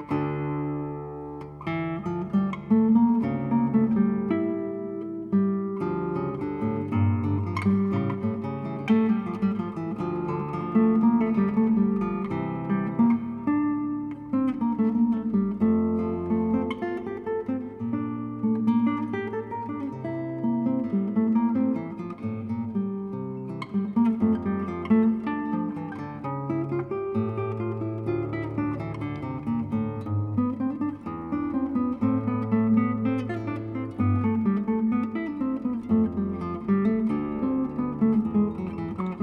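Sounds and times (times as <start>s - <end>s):
classical violin piece arranged for guitar: 0.0s - 39.2s.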